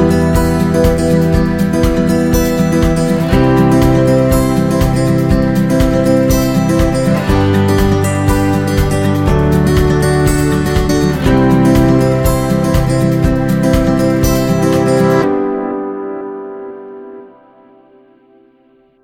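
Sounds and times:
optimistic acoustic guitar music: 0.0s - 19.0s.

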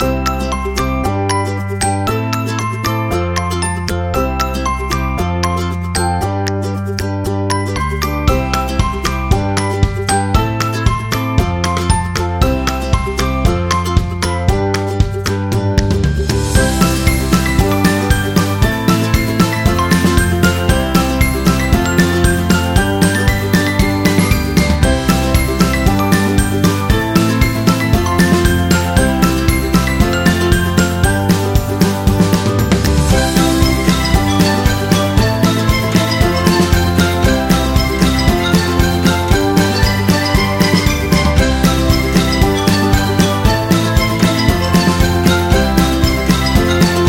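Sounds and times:
fast happy music: 0.0s - 47.0s.

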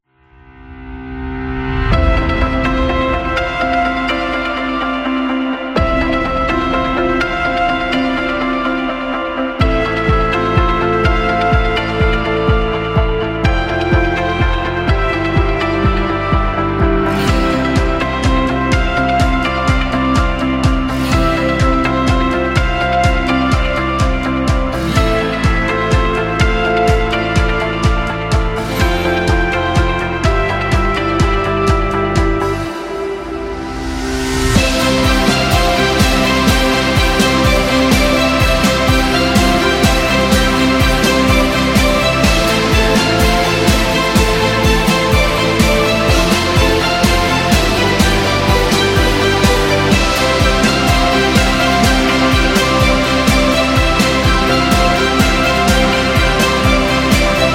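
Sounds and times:
inspiring rock music: 0.6s - 57.5s.

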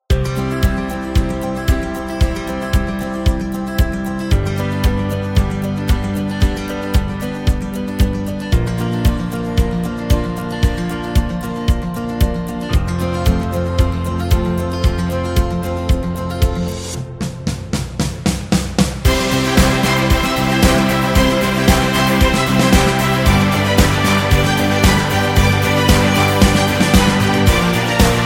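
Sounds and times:
motivational background music: 0.1s - 28.2s.

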